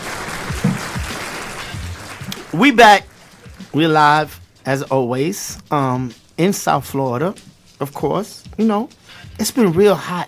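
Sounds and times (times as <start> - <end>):
audience clapping: 0.0 - 4.2
speech: 2.5 - 3.1, 3.7 - 10.2.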